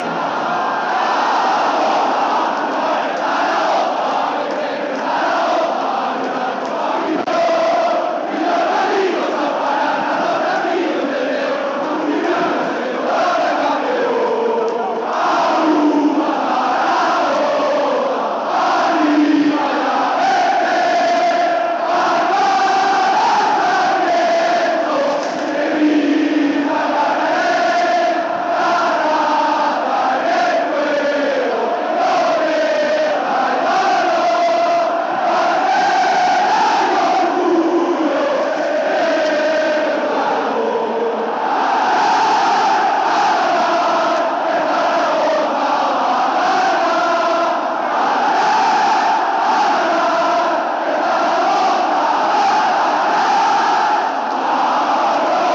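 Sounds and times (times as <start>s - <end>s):
a cappella hymn singing: 0.0s - 55.5s.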